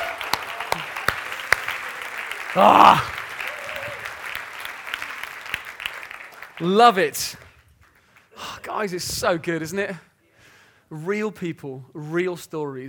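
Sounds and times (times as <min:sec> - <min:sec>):
audience applause: 0:00.0 - 0:08.2
loud vocal exclamation: 0:02.5 - 0:03.2
speech: 0:02.6 - 0:03.1, 0:06.6 - 0:07.4, 0:08.7 - 0:10.1, 0:10.9 - 0:12.8.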